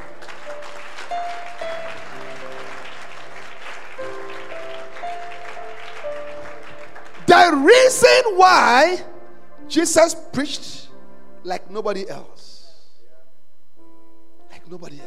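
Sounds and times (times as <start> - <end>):
audience clapping hands: 0.0 - 8.4
speech: 7.4 - 9.1, 9.7 - 10.8, 11.4 - 12.3, 14.7 - 15.0.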